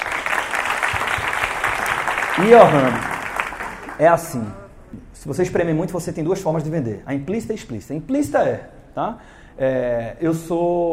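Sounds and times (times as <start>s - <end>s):
audience applause: 0.0s - 4.0s
speech: 2.4s - 3.1s, 4.0s - 10.9s.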